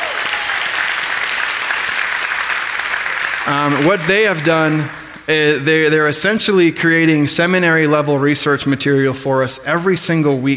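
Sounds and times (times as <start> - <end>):
audience clapping: 0.0 - 5.6
speech: 3.4 - 10.5.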